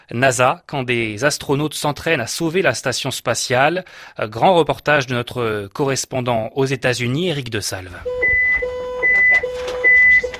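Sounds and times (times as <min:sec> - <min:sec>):
speech: 0:00.1 - 0:08.2
red alert alarm in a ground replica of the International Space Station in Houston: 0:08.0 - 0:10.3.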